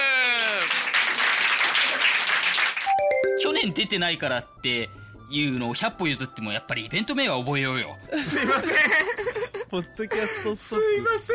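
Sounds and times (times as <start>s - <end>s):
applause: 0.0s - 3.5s
speech: 3.3s - 11.3s
laughter: 8.1s - 10.4s.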